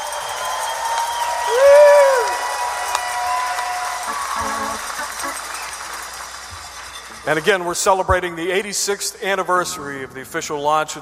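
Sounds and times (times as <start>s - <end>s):
loud swooping whistle: 0.0s - 6.0s
theater audience cheering and applauding: 0.0s - 8.0s
speech: 7.2s - 10.9s.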